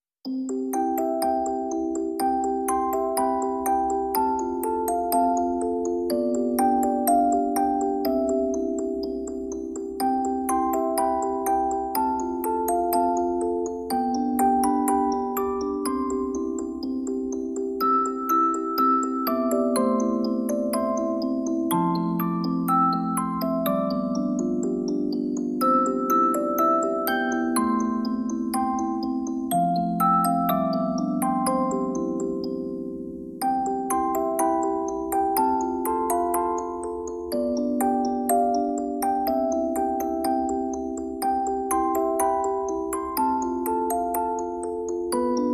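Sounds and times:
music box: 0.2 - 45.5.

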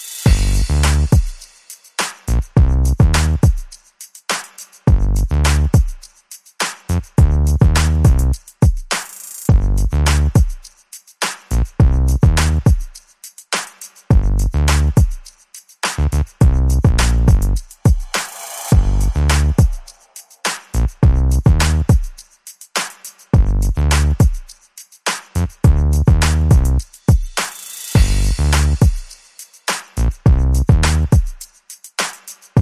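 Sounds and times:
drums: 0.0 - 32.5
bass: 0.3 - 1.2, 2.3 - 3.5, 4.9 - 5.8, 6.9 - 8.4, 9.5 - 10.4, 11.5 - 12.7, 14.1 - 15.0, 16.0 - 17.7, 18.7 - 19.8, 20.8 - 22.0, 23.4 - 24.3, 25.4 - 26.8, 28.0 - 28.8, 30.0 - 31.2.

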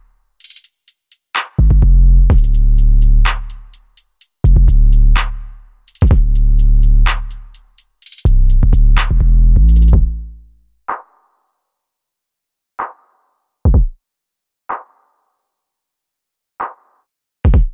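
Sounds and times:
drums: 0.0 - 10.2, 13.7 - 14.0, 16.6 - 17.7
bass: 1.6 - 10.6.

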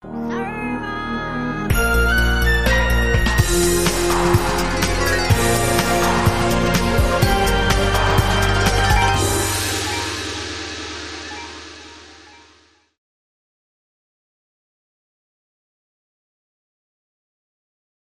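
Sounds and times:
Arabic theme music: 0.0 - 13.0.

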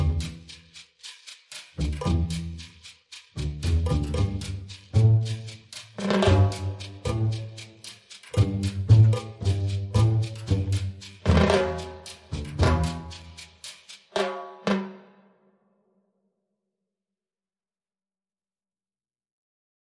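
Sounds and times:
bass: 0.0 - 13.7
percussion: 0.0 - 15.6.

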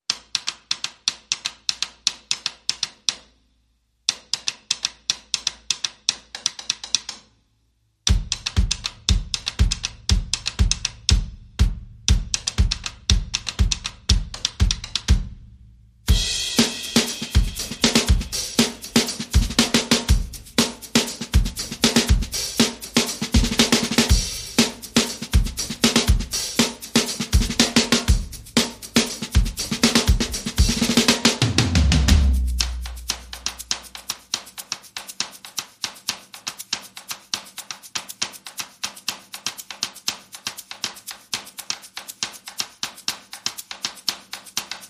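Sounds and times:
drums playing: 8.1 - 34.4.

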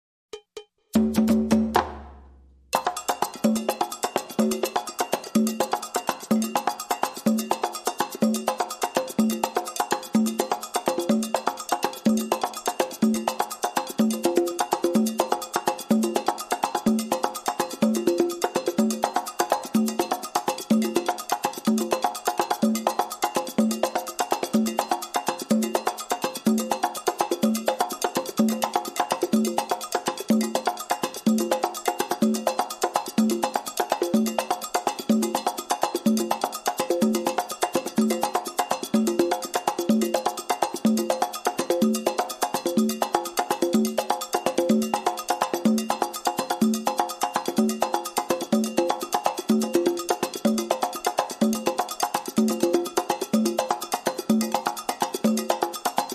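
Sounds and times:
calypso hand percussion loop: 0.3 - 56.1.

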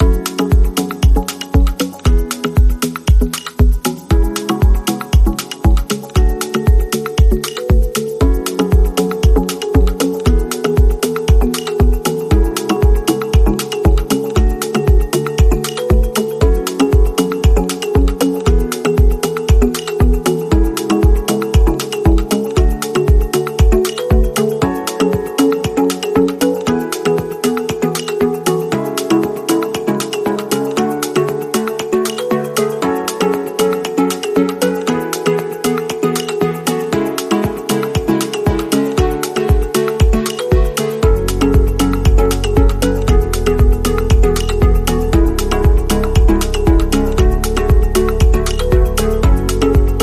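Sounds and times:
tranquil percussion: 0.0 - 50.0.

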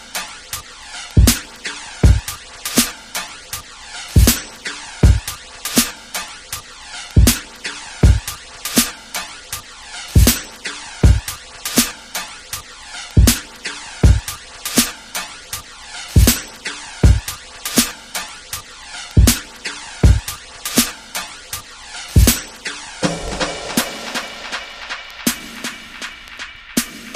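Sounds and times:
strumming beat: 1.2 - 3.3, 4.2 - 6.3, 7.2 - 9.3, 10.2 - 12.3, 13.2 - 15.3, 16.2 - 16.4, 17.0 - 18.3, 19.2 - 27.1.

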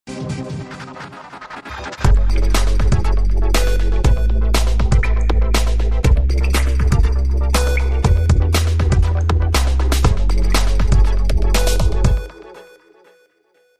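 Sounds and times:
beeps: 2.1 - 12.5.

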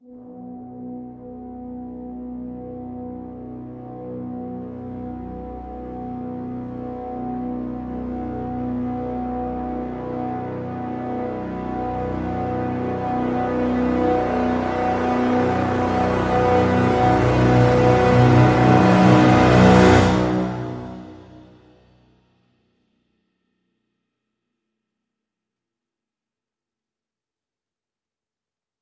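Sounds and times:
full brass swell crescendo: 0.0 - 22.0.

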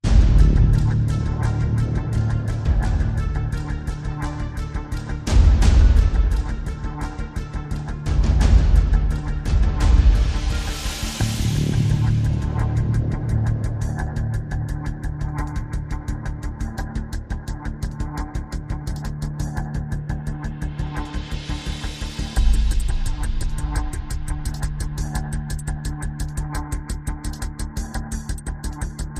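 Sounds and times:
percussion and pulses: 0.0 - 29.1.

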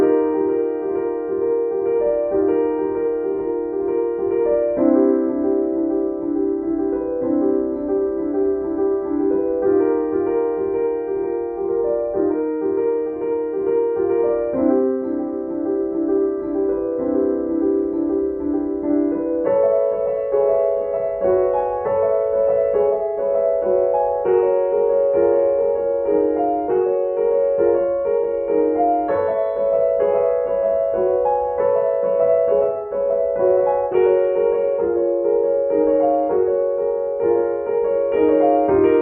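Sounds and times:
solo piano piece: 0.0 - 38.9.

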